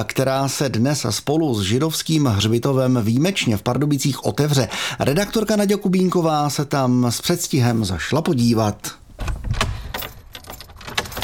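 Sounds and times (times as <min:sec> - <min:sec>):
speech: 0:00.0 - 0:09.7
metallic clicks of the Pardubice Jewish cemetery door being opened: 0:09.2 - 0:11.2
keys jangling opening the door to the Jewish cemetery in Pardubice: 0:09.5 - 0:11.2.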